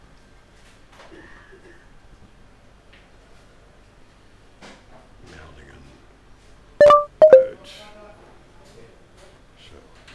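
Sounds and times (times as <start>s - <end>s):
phone notification beeps: 6.8s - 7.5s.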